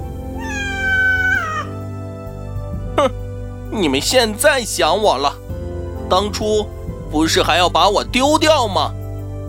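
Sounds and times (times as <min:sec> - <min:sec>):
cat meowing: 0:00.3 - 0:01.8
speech: 0:03.0 - 0:05.4, 0:06.1 - 0:09.0.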